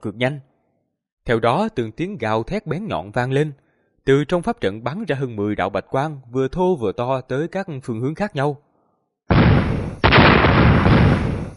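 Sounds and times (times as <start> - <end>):
speech: 0.0 - 0.5, 1.3 - 8.6
series of loud explosions: 9.3 - 11.5.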